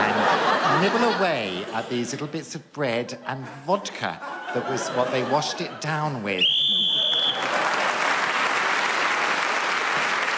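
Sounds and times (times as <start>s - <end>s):
laughter: 0.0s - 2.4s, 3.2s - 6.4s
speech: 0.8s - 6.6s
referee's whistle blast ending the round: 6.4s - 7.5s
audience applause: 6.8s - 10.3s.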